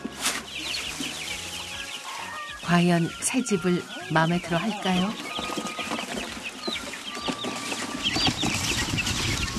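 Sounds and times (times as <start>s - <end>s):
chicks peeping in new coop: 0.0s - 9.5s
speech: 2.7s - 5.2s.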